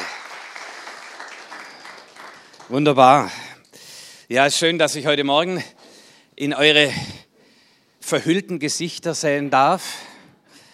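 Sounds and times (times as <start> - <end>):
audience applause: 0.0 - 3.1
speech: 2.7 - 3.4, 4.3 - 5.8, 6.4 - 7.1, 8.1 - 10.1.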